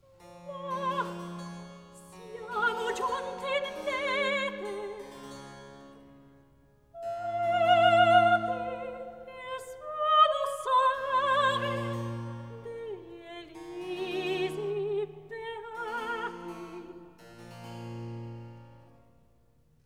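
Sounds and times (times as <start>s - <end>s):
recitative singing: 0.0s - 5.4s, 6.9s - 17.2s.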